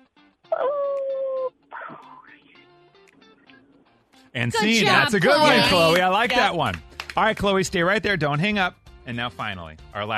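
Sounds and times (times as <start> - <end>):
child's voice imitating a firework: 0.5 - 2.3
speech: 0.6 - 0.8, 4.4 - 10.1.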